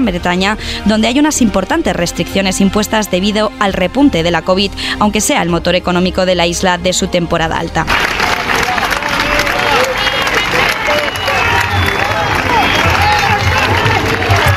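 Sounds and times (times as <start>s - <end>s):
speech: 0.0s - 8.5s
cheering: 7.9s - 14.5s
clapping: 7.9s - 14.5s
health workers shouting and chanting at a street protest: 8.0s - 14.5s.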